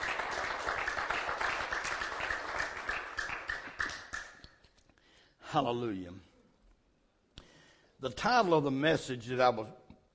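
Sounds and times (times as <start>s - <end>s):
audience clapping hands in praise: 0.0s - 4.6s
speech: 5.5s - 6.3s, 8.0s - 9.8s.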